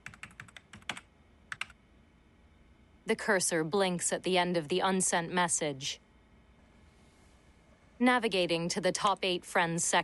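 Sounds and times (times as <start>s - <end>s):
typing on a computer keyboard while writing an instant message: 0.0s - 1.8s
speech: 3.1s - 6.0s, 8.0s - 10.0s.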